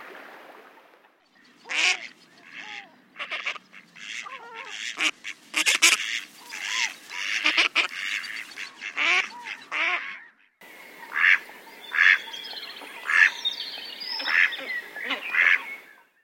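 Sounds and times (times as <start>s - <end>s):
mallard duck: 1.6s - 10.4s, 11.1s - 12.2s, 14.2s - 15.8s.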